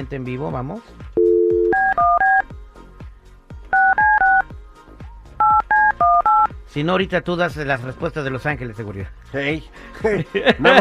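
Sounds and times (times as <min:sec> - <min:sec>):
speech: 0:00.0 - 0:01.2, 0:06.7 - 0:10.7
dial tone: 0:01.2 - 0:02.5, 0:03.8 - 0:04.5, 0:05.4 - 0:06.5
laughter: 0:10.0 - 0:10.7.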